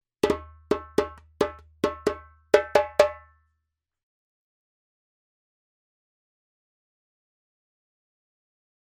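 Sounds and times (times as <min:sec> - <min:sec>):
djembe drumming: 0:00.2 - 0:03.3.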